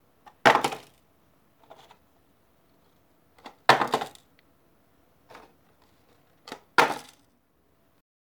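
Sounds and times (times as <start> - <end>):
hollow box picked up and dropped: 0.4 - 1.0, 3.7 - 4.2, 6.5 - 7.2.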